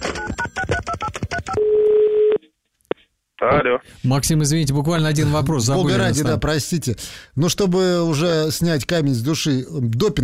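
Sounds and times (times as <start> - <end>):
telephone touch-tone dialing beeps: 0.1 - 2.4
steady telephone tone: 1.5 - 2.4
speech: 3.5 - 10.2.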